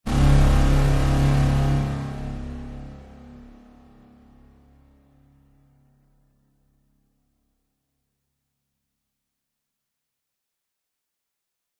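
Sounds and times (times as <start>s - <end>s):
aggressive synth buzz: 0.1s - 4.0s.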